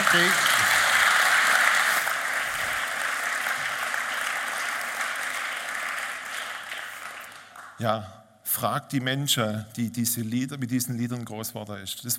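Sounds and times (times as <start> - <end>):
audience applause: 0.0 - 7.8
speech: 0.1 - 0.6, 7.8 - 12.1.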